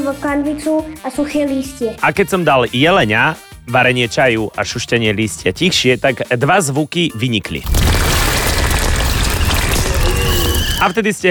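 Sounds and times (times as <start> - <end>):
speech: 0.0 - 8.1, 10.8 - 11.2
rain: 7.7 - 10.8.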